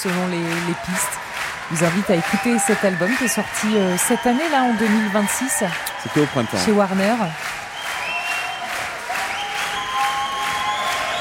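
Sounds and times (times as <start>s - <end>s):
speech: 0.0s - 7.6s
audience clapping after a musical performance: 0.0s - 11.1s
faint high whistles: 2.9s - 5.1s, 5.8s - 6.7s, 7.7s - 11.1s.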